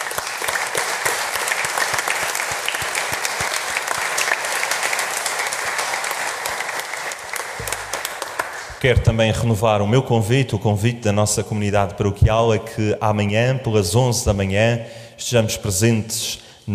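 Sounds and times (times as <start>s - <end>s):
applause: 0.0s - 8.8s
speech: 8.8s - 16.7s.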